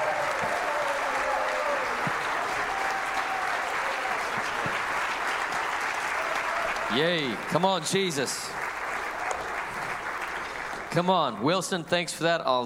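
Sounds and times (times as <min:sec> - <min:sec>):
voices cheering in a church: 0:00.0 - 0:11.7
church audience clapping to welcome a guest: 0:00.0 - 0:12.0
speech: 0:06.9 - 0:08.6, 0:10.9 - 0:12.6.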